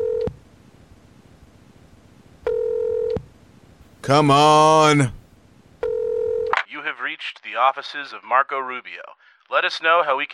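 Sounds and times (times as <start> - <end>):
telephone ringing: 2.5 - 3.1, 5.8 - 6.6
speech: 4.1 - 5.2, 7.0 - 10.3.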